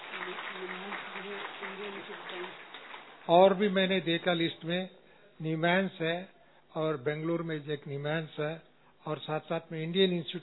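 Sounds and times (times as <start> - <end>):
audience clapping loudly: 0.0 - 4.4
speech: 0.6 - 10.4.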